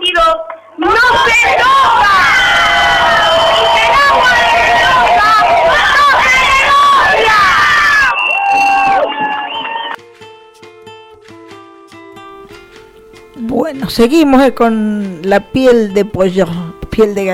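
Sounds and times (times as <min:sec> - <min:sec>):
protest crowd chanting and shouting: 0:00.8 - 0:10.0
speech: 0:13.9 - 0:17.3.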